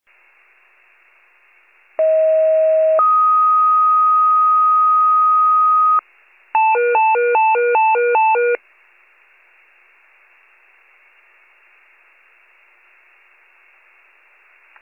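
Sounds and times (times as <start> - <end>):
fire pager alert: 2.0 - 6.0, 6.6 - 8.6.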